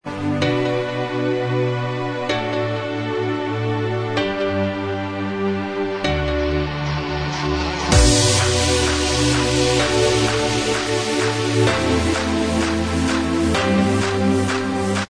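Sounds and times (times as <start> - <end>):
instrumental remix track: 0.0 - 15.0.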